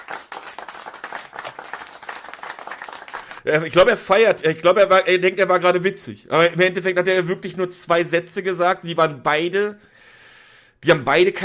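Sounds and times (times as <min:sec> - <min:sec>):
crowd applause: 0:00.0 - 0:03.4
speech: 0:03.4 - 0:09.9, 0:10.8 - 0:11.4.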